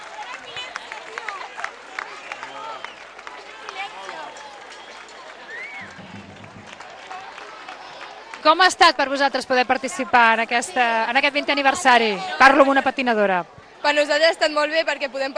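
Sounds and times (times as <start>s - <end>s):
audience applause at street festival: 0.0s - 9.2s
speech: 8.4s - 15.3s.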